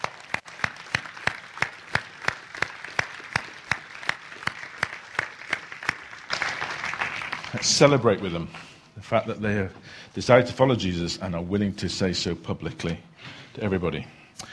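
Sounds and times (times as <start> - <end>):
audience clapping: 0.0 - 8.4
speech: 7.6 - 14.2.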